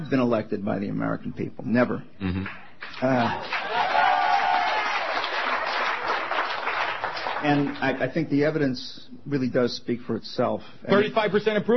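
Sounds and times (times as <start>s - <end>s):
speech: 0.1s - 3.8s, 7.4s - 11.7s
tentative audience applause: 2.8s - 8.0s.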